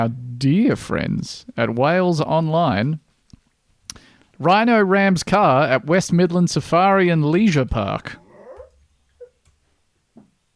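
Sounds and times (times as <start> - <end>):
speech: 0.0 - 3.0, 4.4 - 8.2
dog barking: 8.2 - 9.4.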